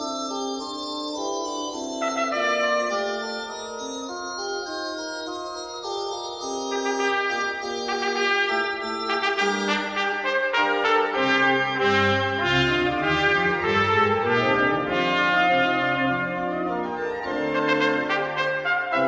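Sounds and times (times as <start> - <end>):
organ: 0.0 - 19.0
trumpet: 1.9 - 3.7, 6.7 - 19.0.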